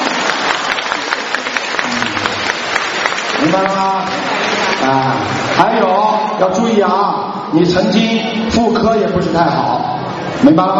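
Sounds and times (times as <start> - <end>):
crowd applauding: 0.0 - 6.4
speech: 3.5 - 9.8, 10.4 - 10.7.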